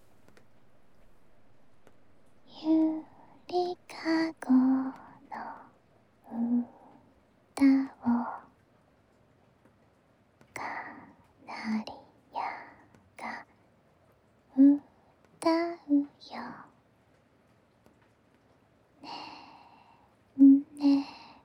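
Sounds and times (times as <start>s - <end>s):
lullaby sung to put someone to sleep ASMR: 2.4s - 7.0s, 7.6s - 8.5s, 10.6s - 13.4s, 14.5s - 16.7s, 20.4s - 21.4s.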